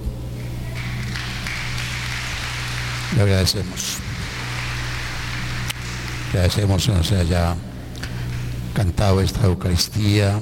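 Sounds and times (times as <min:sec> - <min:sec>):
low electrical hum: 0:00.0 - 0:10.3
crowd clapping for the choir: 0:00.4 - 0:08.6
speech: 0:03.1 - 0:04.1, 0:06.3 - 0:07.7, 0:08.8 - 0:10.3.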